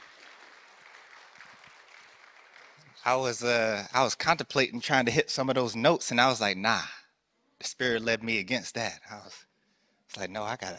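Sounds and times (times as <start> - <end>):
audience applause: 0.0 - 3.6
speech: 3.0 - 7.0, 7.6 - 9.5, 10.1 - 10.7.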